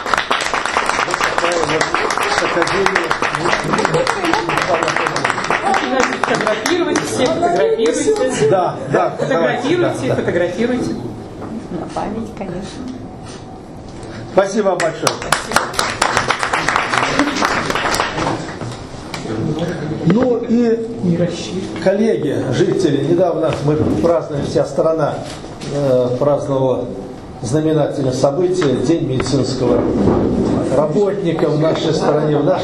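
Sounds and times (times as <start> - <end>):
crowd applauding: 0.0 - 8.4, 14.8 - 18.8
speech: 2.6 - 4.1, 6.0 - 11.1, 11.7 - 13.0, 14.4 - 15.6, 20.0 - 32.6.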